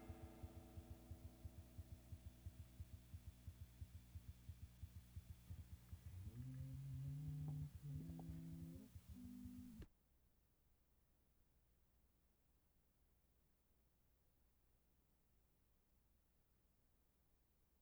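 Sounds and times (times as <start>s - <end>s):
guitar: 0.0s - 9.9s.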